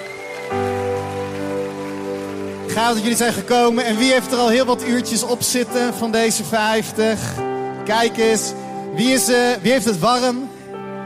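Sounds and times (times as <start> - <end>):
audience applause: 0.0 - 4.5
speech: 2.8 - 10.4.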